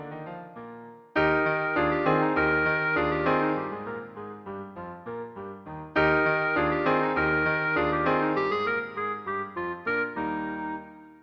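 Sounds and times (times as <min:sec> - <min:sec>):
musette: 0:00.0 - 0:11.2
clarinet: 0:01.2 - 0:04.2, 0:06.0 - 0:11.2.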